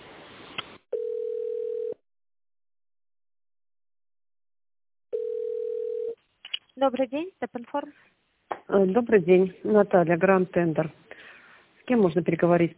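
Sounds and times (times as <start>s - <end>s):
telephone ringback tone while on hold: 0.9s - 2.0s, 5.1s - 6.2s
speech: 6.8s - 11.0s, 11.9s - 12.7s.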